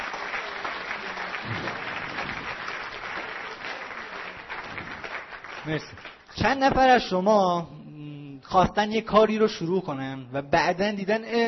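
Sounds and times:
audience applause: 0.0s - 6.3s
speech: 5.6s - 7.8s, 8.5s - 11.4s.

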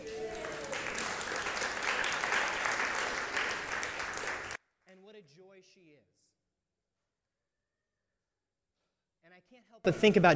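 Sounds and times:
audience applause: 0.0s - 4.6s
speech: 9.6s - 10.3s.

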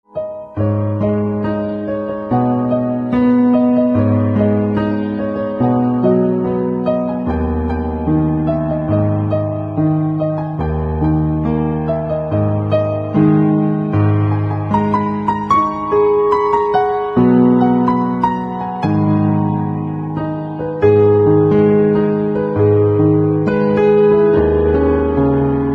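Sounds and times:
piano: 0.0s - 25.7s.

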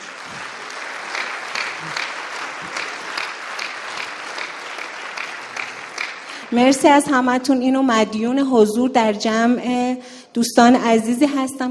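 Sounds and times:
audience applause: 0.0s - 6.9s
speech: 6.5s - 11.7s.

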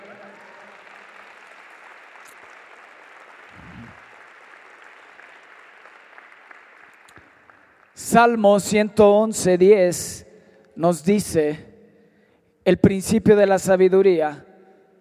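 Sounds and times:
applause: 0.0s - 8.7s
speech: 8.0s - 11.7s, 12.7s - 14.5s.

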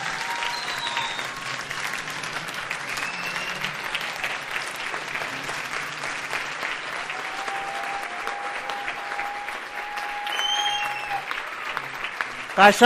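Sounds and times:
audience applause: 0.0s - 12.8s.

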